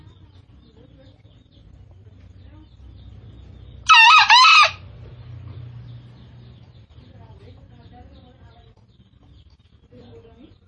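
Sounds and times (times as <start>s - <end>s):
Green junglefowl crow: 3.9s - 4.9s.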